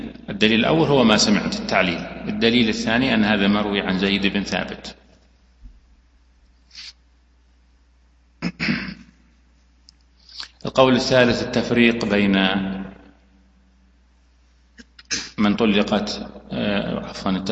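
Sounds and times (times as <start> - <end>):
speech: 0.4 - 5.0, 10.7 - 12.8, 15.4 - 17.5
person sneezing: 6.7 - 7.0, 8.4 - 9.2, 14.8 - 15.4.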